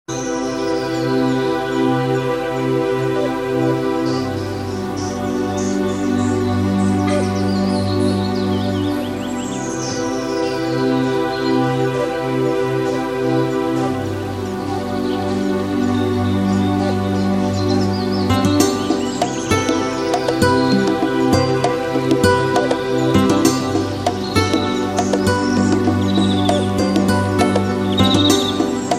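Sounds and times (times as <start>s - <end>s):
ambient chillout ringtone music: 0.1s - 28.9s.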